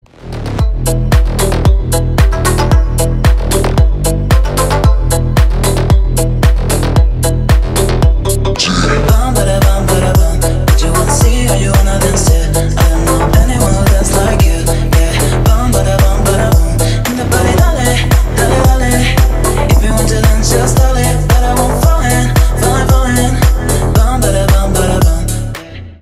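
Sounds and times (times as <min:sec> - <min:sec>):
electronic dance music: 0:00.1 - 0:25.7.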